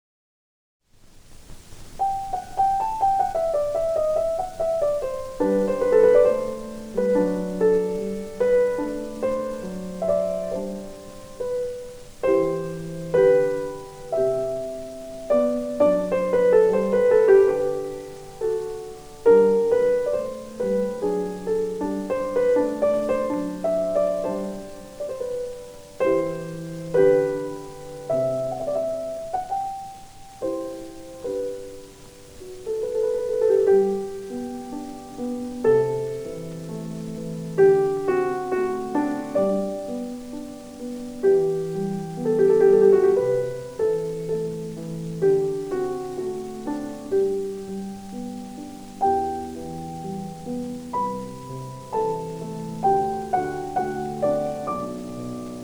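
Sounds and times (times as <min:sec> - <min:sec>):
piano sonata: 0:01.4 - 0:55.6.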